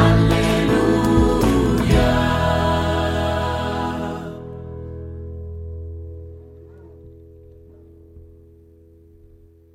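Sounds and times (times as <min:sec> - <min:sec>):
contralto voice singing an alleluia: 0:00.0 - 0:04.8.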